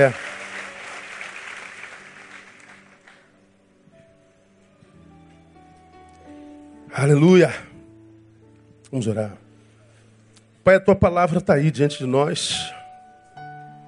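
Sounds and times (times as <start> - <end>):
speech: 0.0 - 0.3, 7.0 - 7.7, 8.9 - 9.4, 10.6 - 12.8
audience applauding: 0.0 - 3.4.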